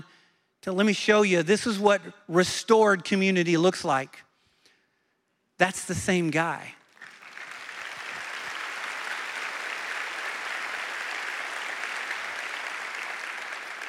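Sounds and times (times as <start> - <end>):
speech: 0.6 - 4.3, 5.6 - 6.8
audience applause: 6.9 - 13.8.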